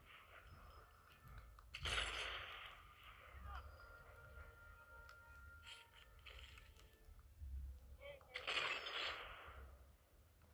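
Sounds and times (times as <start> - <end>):
game ambience in Sniper Elite 4: 0.0 - 10.5
sniper rifle shots in the video game Sniper Elite 4: 1.7 - 3.4, 8.4 - 9.8.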